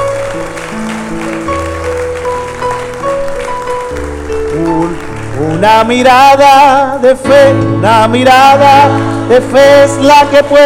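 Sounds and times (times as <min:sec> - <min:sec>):
audience applause: 0:00.0 - 0:06.7
keyboard or organ chords: 0:00.0 - 0:10.6
speech: 0:05.6 - 0:10.6.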